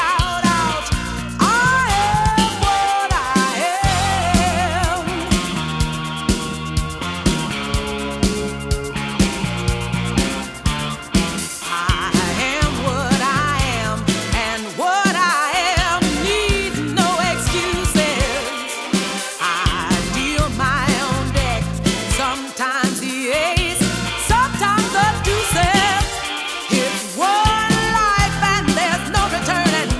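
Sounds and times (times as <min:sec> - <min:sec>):
disco music: 0:00.0 - 0:29.9.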